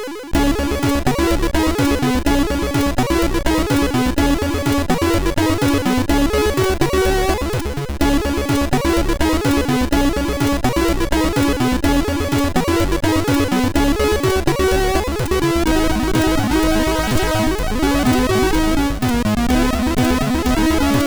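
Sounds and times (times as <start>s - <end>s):
MOS6581 SID chip music: 0.3s - 21.0s.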